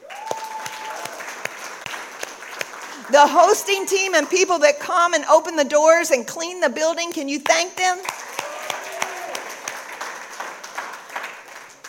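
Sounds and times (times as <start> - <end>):
audience applause: 0.0 - 4.4, 8.0 - 11.8
speech: 3.1 - 8.2.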